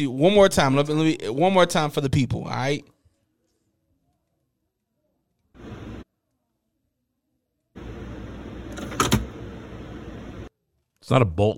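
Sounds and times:
speech: 0:00.0 - 0:02.9, 0:11.1 - 0:11.5
printer mechanism whirring: 0:07.8 - 0:10.5.

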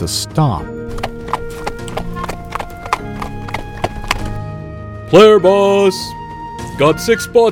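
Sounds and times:
speech: 0:00.0 - 0:01.0, 0:05.1 - 0:06.2, 0:06.8 - 0:07.5
horse hooves clopping on a hard road: 0:00.8 - 0:04.5.

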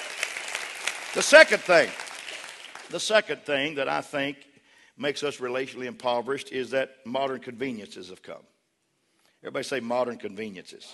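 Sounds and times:
audience clapping: 0:00.0 - 0:03.4
speech: 0:01.2 - 0:02.0, 0:02.9 - 0:08.5, 0:09.4 - 0:10.9.

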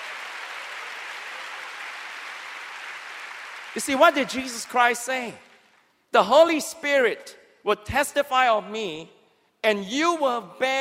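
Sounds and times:
crowd clapping: 0:00.0 - 0:05.9
speech: 0:03.7 - 0:05.5, 0:06.1 - 0:10.8.

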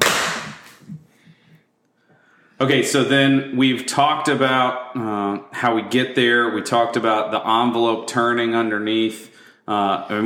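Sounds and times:
hand clap for recording sync: 0:00.0 - 0:01.0
speech: 0:02.6 - 0:10.2.

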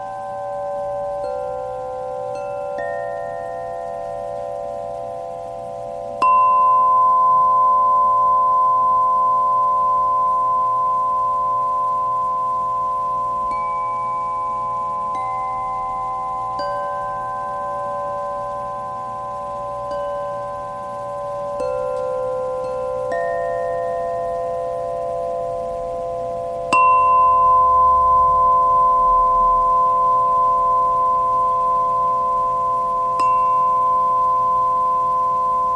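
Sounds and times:
singing bowl and chime tones: 0:00.0 - 0:35.7
soft low hum: 0:00.0 - 0:35.7.

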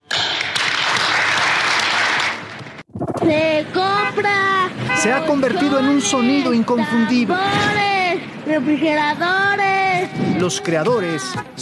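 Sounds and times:
audience applause: 0:00.5 - 0:02.6
speech: 0:03.2 - 0:04.4, 0:05.0 - 0:11.6.

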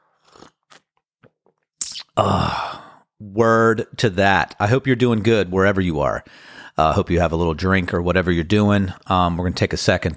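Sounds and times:
sipping coffee: 0:01.8 - 0:02.4
speech: 0:02.2 - 0:02.6, 0:03.2 - 0:10.1.

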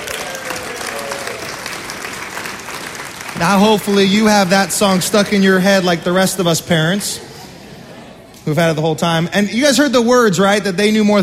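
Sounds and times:
audience crowd clapping: 0:00.0 - 0:05.6
speech: 0:03.4 - 0:07.3, 0:08.5 - 0:11.2.

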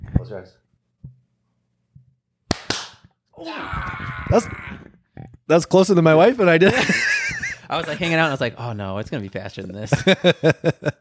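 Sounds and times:
speech: 0:00.3 - 0:00.6, 0:03.4 - 0:04.9, 0:05.5 - 0:07.1, 0:07.7 - 0:10.9
group clapping hands in front of microphone: 0:02.5 - 0:03.0
two sharp isolated hand claps: 0:02.5 - 0:03.1
laughter: 0:06.6 - 0:08.4, 0:09.8 - 0:10.9.

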